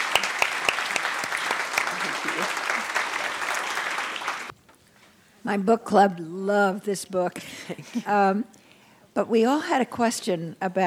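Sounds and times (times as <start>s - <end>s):
audience applause after a book talk: 0.0s - 4.5s
speech: 5.4s - 8.6s, 9.2s - 10.8s.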